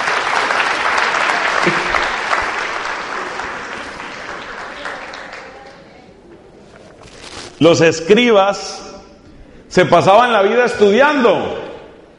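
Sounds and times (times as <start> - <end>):
audience applause: 0.0 - 5.9
speech: 7.6 - 8.8, 9.8 - 11.6.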